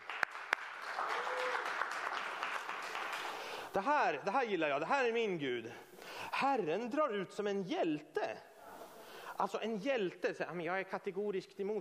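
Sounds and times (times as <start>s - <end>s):
audience clapping: 0.0s - 3.8s
speech: 3.7s - 8.4s, 9.4s - 11.7s.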